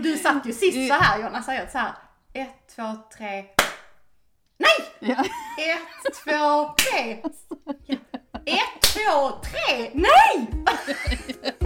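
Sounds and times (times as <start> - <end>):
speech: 0.0 - 3.6, 4.6 - 11.6
hands clapping: 3.6 - 4.0, 6.8 - 7.4, 8.8 - 9.6
laughter: 5.0 - 9.2, 10.6 - 11.6.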